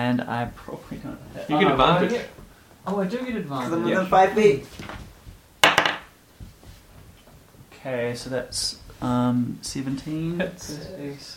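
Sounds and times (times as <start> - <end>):
speech: 0.0 - 4.9, 7.8 - 11.3
dice rolling on a table: 5.6 - 6.1.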